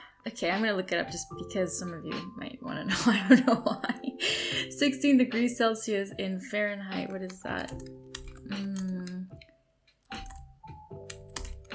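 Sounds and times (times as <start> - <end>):
speech: 0.2 - 8.7
typing on a keyboard: 7.0 - 9.2, 10.0 - 11.7.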